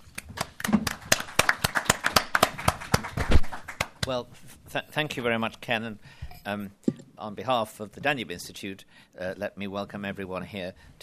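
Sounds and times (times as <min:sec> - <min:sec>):
conference audience applause welcoming a speaker at Hudson: 0:00.4 - 0:04.0
speech: 0:04.1 - 0:11.0.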